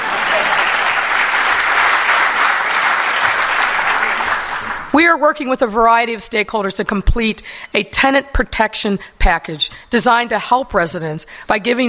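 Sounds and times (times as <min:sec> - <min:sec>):
crowd applause: 0:00.0 - 0:04.9
speech: 0:05.0 - 0:11.8.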